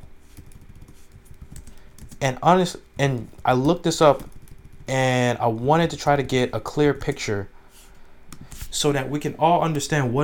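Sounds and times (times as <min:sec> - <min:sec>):
typing on a computer keyboard: 0:00.3 - 0:02.4, 0:03.1 - 0:05.2
speech: 0:02.2 - 0:04.3, 0:04.9 - 0:07.6, 0:08.7 - 0:10.2.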